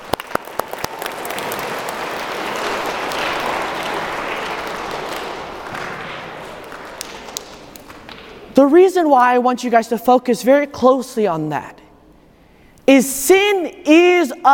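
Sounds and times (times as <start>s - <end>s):
crowd applause: 0.0s - 8.4s
speech: 8.6s - 11.8s, 12.9s - 14.5s.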